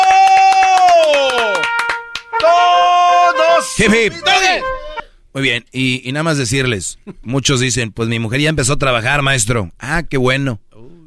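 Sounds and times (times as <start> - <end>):
people clapping: 0.0 - 3.5
people cheering: 0.0 - 5.0
speech: 3.8 - 4.7, 5.3 - 10.7.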